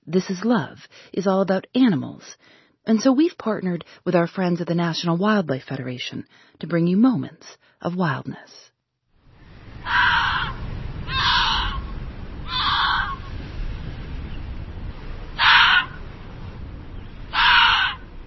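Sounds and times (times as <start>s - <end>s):
speech: 0.1s - 8.7s, 9.8s - 11.7s
steady low rumbling background: 9.3s - 18.2s
Arctic fox call: 9.8s - 13.4s, 15.3s - 16.1s, 17.3s - 18.1s.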